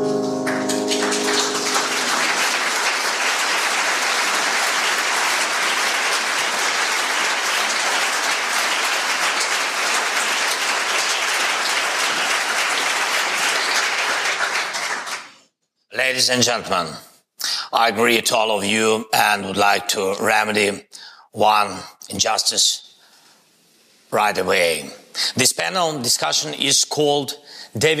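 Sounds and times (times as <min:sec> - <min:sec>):
audience applause: 0:00.1 - 0:15.4
speech: 0:16.2 - 0:17.1, 0:17.7 - 0:22.9, 0:24.1 - 0:27.9.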